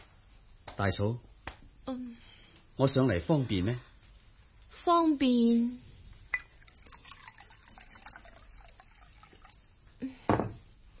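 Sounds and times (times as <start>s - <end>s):
speech: 0.8s - 3.9s, 4.7s - 5.9s
tea pouring into a cup: 6.2s - 10.0s
cup clinking: 6.3s - 9.6s.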